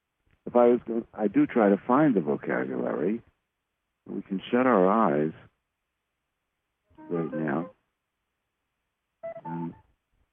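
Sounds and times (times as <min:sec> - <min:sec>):
speech: 0:00.5 - 0:03.3, 0:04.1 - 0:05.5, 0:07.1 - 0:07.8
electronic beeps like telephone dialing tones: 0:09.2 - 0:09.8.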